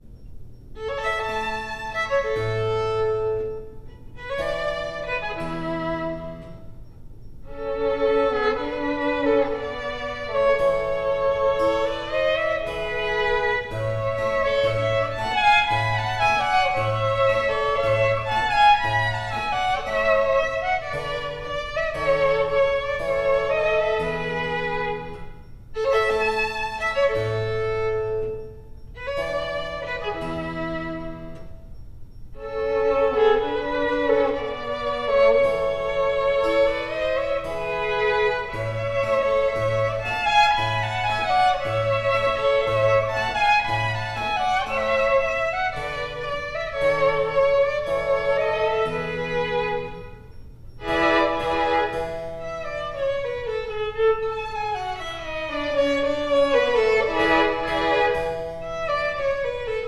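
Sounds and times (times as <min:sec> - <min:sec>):
minuet: 0:00.0 - 0:59.8.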